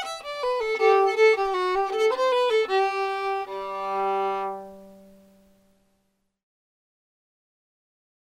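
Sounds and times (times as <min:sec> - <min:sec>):
fiddle: 0:00.0 - 0:05.5.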